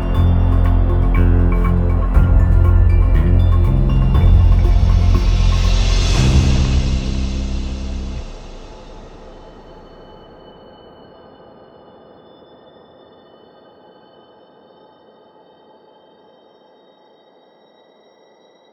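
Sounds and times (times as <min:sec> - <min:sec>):
percussive underscore music: 0:00.0 - 0:10.1.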